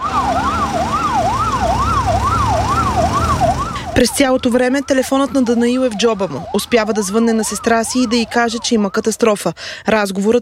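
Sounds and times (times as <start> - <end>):
ambulance sirens: 0.0 - 9.8
speech: 4.0 - 10.4.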